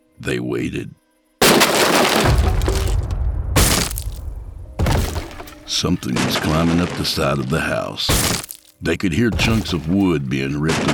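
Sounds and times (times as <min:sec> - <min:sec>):
speech: 0:00.2 - 0:01.0, 0:05.7 - 0:10.9
upstairs window glass shattering: 0:01.4 - 0:04.2, 0:04.8 - 0:07.5, 0:08.1 - 0:08.8, 0:09.4 - 0:10.9.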